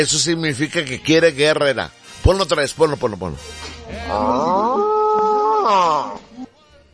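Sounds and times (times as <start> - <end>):
speech: 0.0 - 5.0, 5.6 - 6.2
bull bellowing: 3.9 - 6.4.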